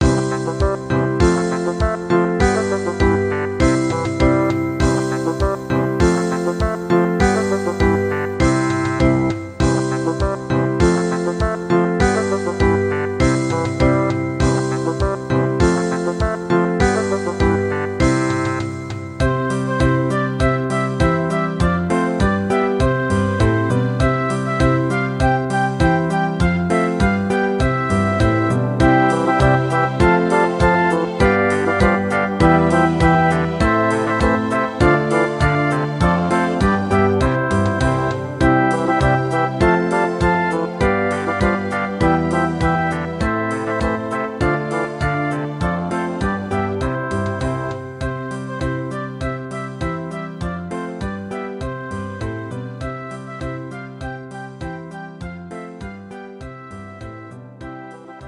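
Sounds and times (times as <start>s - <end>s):
children's songs playback: 0.0s - 24.0s, 24.8s - 54.0s.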